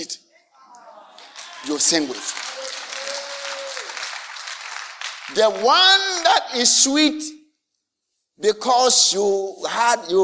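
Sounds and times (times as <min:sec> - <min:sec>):
audience clapping: 0:00.8 - 0:06.5
speech: 0:01.6 - 0:02.8, 0:05.3 - 0:07.4, 0:08.4 - 0:10.2.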